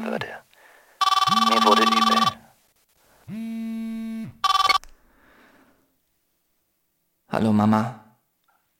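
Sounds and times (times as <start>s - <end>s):
speech: 0.2s - 0.5s, 1.6s - 2.1s, 7.4s - 8.0s
mobile phone ringing: 1.0s - 2.4s, 4.4s - 4.8s.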